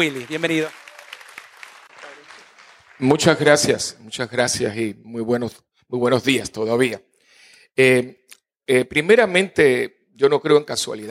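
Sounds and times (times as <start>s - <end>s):
speech: 0.0s - 0.8s, 3.0s - 7.1s, 7.7s - 11.0s
audience applause: 0.0s - 3.7s.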